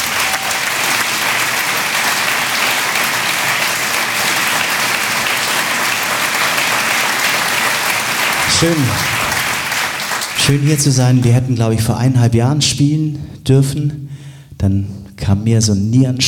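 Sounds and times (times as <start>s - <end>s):
audience applause: 0.0s - 11.5s
speech: 8.6s - 9.2s, 10.4s - 16.2s.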